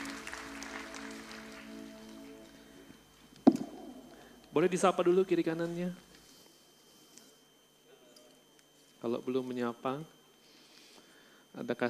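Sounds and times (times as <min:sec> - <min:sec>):
audience applause: 0:00.0 - 0:03.0
sustained musical tones: 0:00.0 - 0:05.6
sharp knock: 0:03.5 - 0:04.1
speech: 0:04.6 - 0:06.1, 0:09.0 - 0:10.2, 0:11.6 - 0:11.8.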